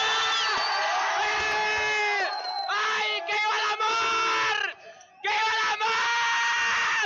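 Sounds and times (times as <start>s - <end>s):
crowd cheering for couple: 0.0s - 7.0s.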